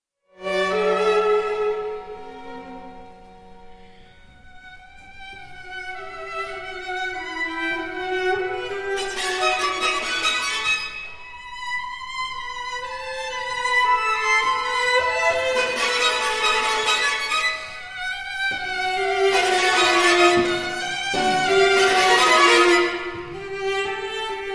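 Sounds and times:
string quartet: 0.4s - 24.5s.

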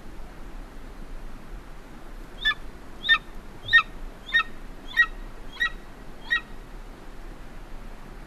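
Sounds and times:
golden eagle calling in short high yelps: 2.4s - 6.6s.

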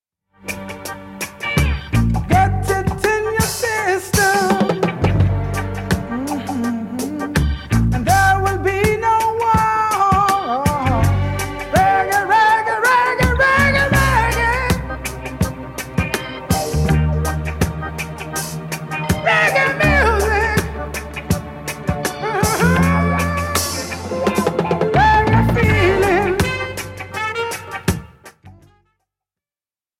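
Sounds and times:
reggae music: 0.4s - 28.9s.

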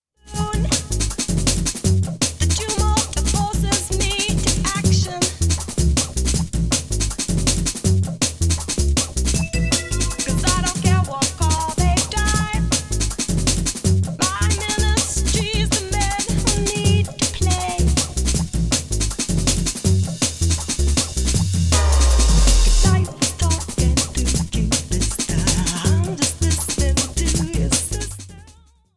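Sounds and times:
breakbeat music: 0.4s - 28.6s.

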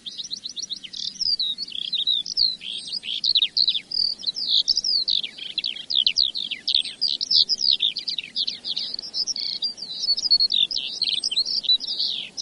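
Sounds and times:
Eurasian skylark singing: 0.0s - 12.3s.

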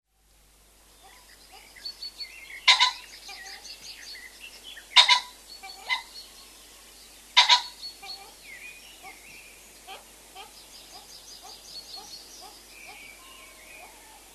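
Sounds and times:
common pheasant crowing: 2.6s - 3.7s, 4.8s - 6.6s, 7.4s - 9.2s, 9.8s - 14.3s.

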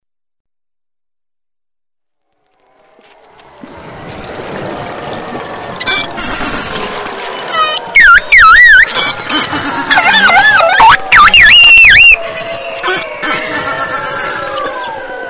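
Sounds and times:
beluga whale chorus of overlapping whistles: 5.8s - 6.8s, 7.4s - 15.2s.

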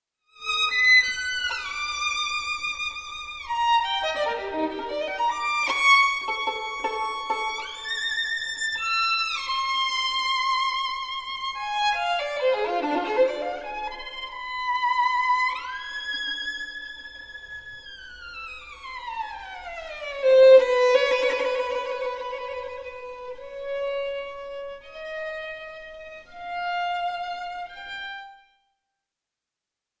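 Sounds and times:
symphony orchestra playing a violin concerto: 0.4s - 28.4s.

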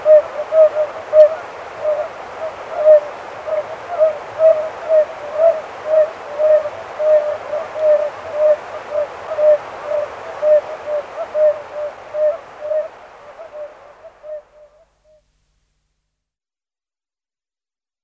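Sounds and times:
Oriental fire-bellied toad calling: 0.0s - 15.2s.

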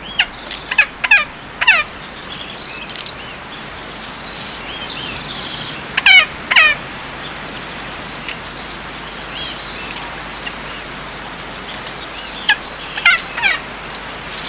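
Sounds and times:
Magellanic woodpecker harsh nasal squawks: 0.2s - 1.9s, 6.0s - 6.8s, 12.5s - 13.7s.

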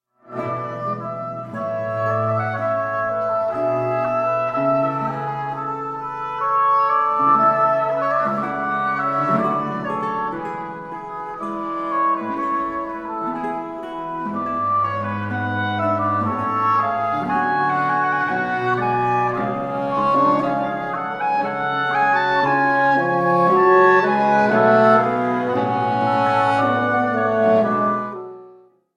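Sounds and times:
continuo: 0.3s - 28.5s
two oboes: 0.3s - 28.5s
bassoon: 0.3s - 28.7s.

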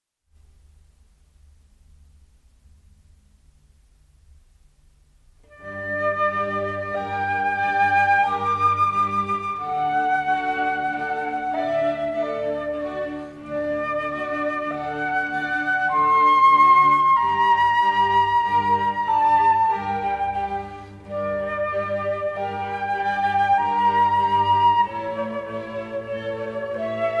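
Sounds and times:
concerto in G for flute and strings: 5.4s - 27.1s.

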